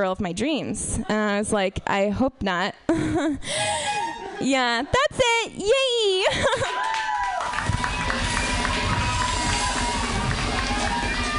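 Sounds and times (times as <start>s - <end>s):
speech: 0.0s - 7.0s
audience clapping: 6.6s - 11.3s.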